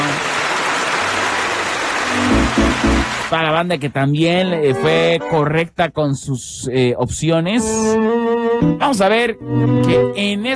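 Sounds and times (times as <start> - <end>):
applause: 0.0 - 3.7
speech: 3.3 - 10.5.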